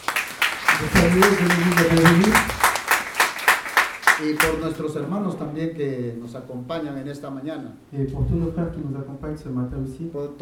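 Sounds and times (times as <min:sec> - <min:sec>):
church congregation applauding during a morning service: 0:00.0 - 0:04.9
speech: 0:00.8 - 0:02.6, 0:04.2 - 0:10.3.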